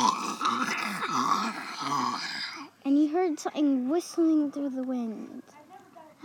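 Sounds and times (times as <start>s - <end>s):
person moaning and groaning: 0.0s - 2.5s
speech: 3.4s - 5.6s.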